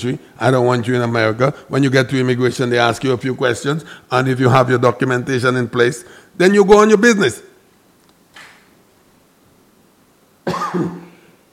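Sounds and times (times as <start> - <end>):
speech: 0.0 - 7.5, 10.7 - 11.0
person coughing from sinus irritation caused by car air fresheners: 10.4 - 11.4.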